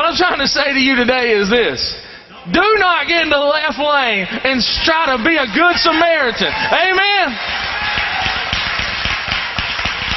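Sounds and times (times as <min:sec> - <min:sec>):
speech: 0:00.2 - 0:07.7
audience applause: 0:05.3 - 0:10.1.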